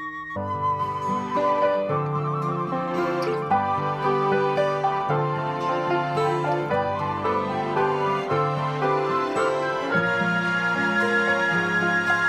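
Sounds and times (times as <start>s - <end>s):
easy listening and classical music: 0.5s - 12.2s.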